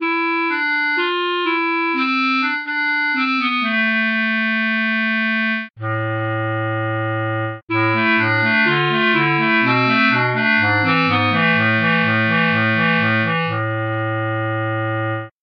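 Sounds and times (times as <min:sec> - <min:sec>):
clarinet: 0:00.0 - 0:15.3.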